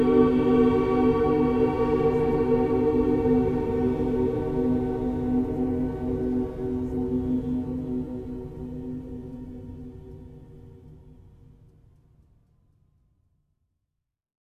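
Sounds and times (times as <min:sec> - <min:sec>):
choir singing: 0:00.0 - 0:09.6.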